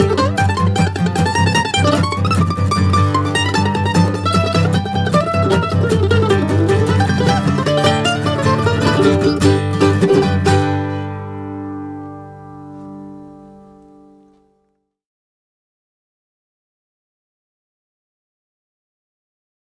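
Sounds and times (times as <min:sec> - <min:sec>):
bluegrass breakdown: 0:00.0 - 0:14.5.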